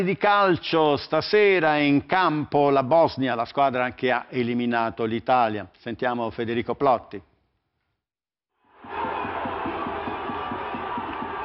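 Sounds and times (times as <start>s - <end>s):
speech: 0.0s - 7.3s
football fans celebrating in the street roaring and cheering: 8.6s - 11.4s
rhythmic pounding beat: 8.8s - 11.4s.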